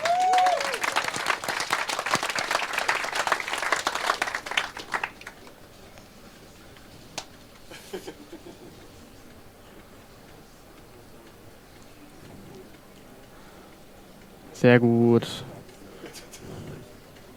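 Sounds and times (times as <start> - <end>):
audience applause: 0.0 - 5.6
laughter: 7.6 - 9.1
speech: 14.6 - 15.5.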